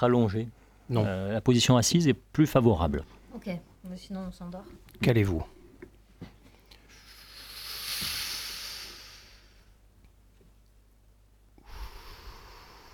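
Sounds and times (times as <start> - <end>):
speech: 0.0 - 5.6
slow deep breathing in and out: 6.7 - 9.8, 11.6 - 12.9.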